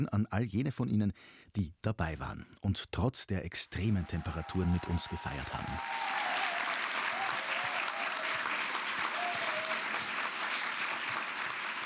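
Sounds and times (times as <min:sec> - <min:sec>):
speech: 0:00.0 - 0:06.3
audience applause at festival: 0:03.8 - 0:11.8.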